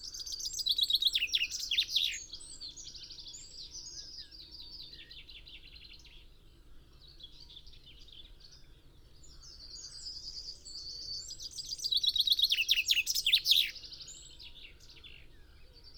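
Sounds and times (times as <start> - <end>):
common chaffinch Fringilla coelebs singing descending trill phrases: 0.0 - 4.0, 9.8 - 15.0.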